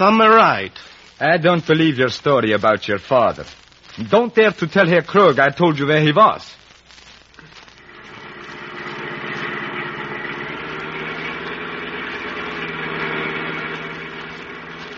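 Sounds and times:
speech: 0.0s - 6.6s
car engine while driven fast: 7.9s - 14.9s.

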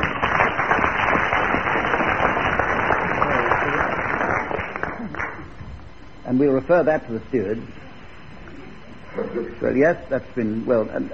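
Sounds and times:
audience applause: 0.0s - 5.5s
speech: 6.3s - 7.8s, 9.2s - 11.1s.

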